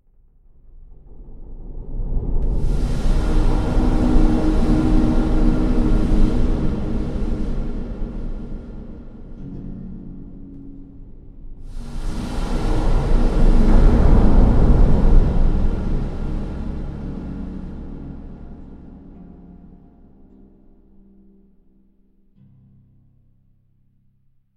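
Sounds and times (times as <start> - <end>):
water in a chamber: 0.7 - 10.4, 11.6 - 20.9.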